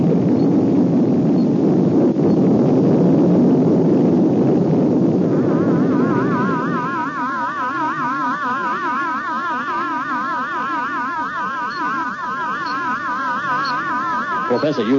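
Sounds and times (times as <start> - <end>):
rocket blasting off: 0.0 - 14.9
warbling electronic tones: 5.2 - 14.9
speech: 14.7 - 14.9.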